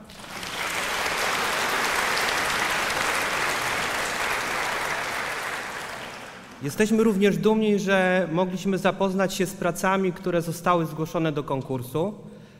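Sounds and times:
audience applause: 0.0s - 6.6s
speech: 6.6s - 12.3s.

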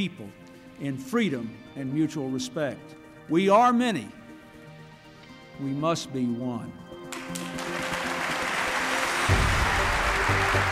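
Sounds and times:
speech: 0.0s - 4.2s, 5.6s - 7.6s
crowd applauding in the chamber: 7.1s - 10.7s.

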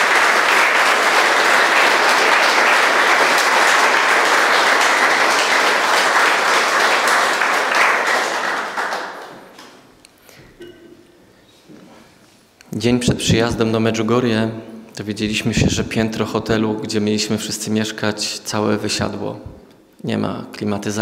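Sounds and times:
audience applause: 0.0s - 9.9s
speech: 12.8s - 20.9s.

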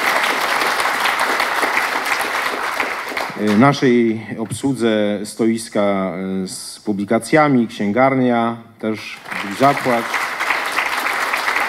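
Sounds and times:
applause: 0.0s - 3.9s, 9.2s - 11.6s
speech: 3.4s - 10.2s.

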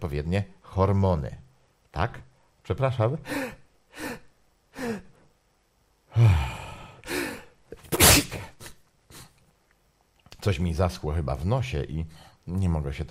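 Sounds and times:
speech: 0.0s - 1.4s, 2.0s - 4.2s, 10.4s - 13.0s
person sneezing: 7.1s - 9.4s.

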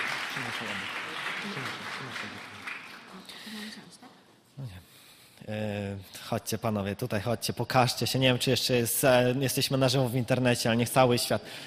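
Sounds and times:
crowd applause: 0.0s - 3.8s
speech: 0.4s - 11.6s.

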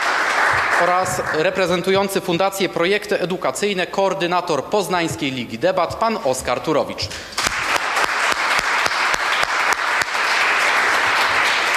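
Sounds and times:
crowd applause: 0.0s - 1.9s, 7.4s - 11.7s
speech: 0.8s - 7.4s.

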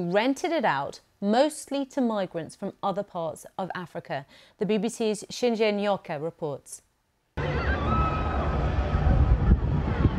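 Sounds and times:
speech: 0.0s - 6.9s
low rumbling: 7.4s - 10.1s
people screaming at night during building fire: 7.4s - 10.1s.

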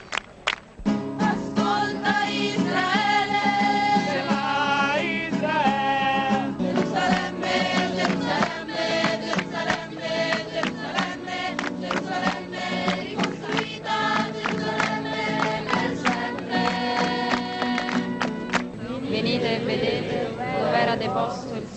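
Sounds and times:
large crowd of young people singing together in chorus: 1.2s - 21.7s.

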